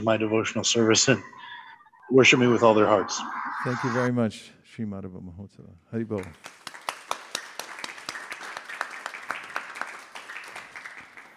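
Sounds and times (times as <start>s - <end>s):
speech: 0.0s - 1.4s, 2.1s - 6.6s
weak audience clapping: 6.1s - 11.3s.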